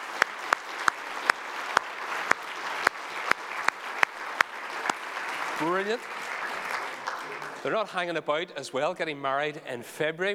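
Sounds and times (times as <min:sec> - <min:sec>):
church audience applause congratulating a newly engaged couple: 0:00.0 - 0:08.0
speech: 0:05.6 - 0:06.3, 0:07.6 - 0:10.3.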